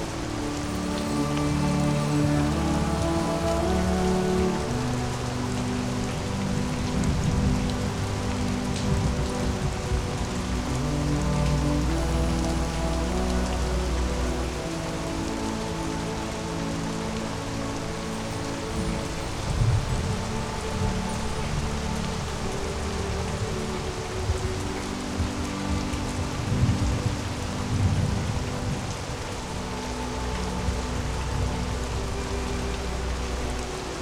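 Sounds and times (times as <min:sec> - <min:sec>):
rain: 0:00.0 - 0:34.0.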